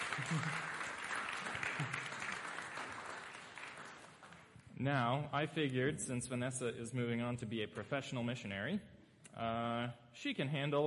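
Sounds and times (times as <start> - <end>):
audience applause: 0.0 - 4.5
speech: 0.2 - 0.7, 4.8 - 10.8.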